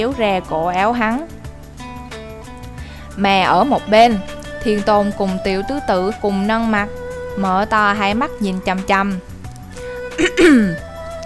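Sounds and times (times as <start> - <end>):
speech: 0.0 - 1.4, 3.2 - 9.3, 10.2 - 10.8
person clearing throat with a dry cough: 10.2 - 10.8.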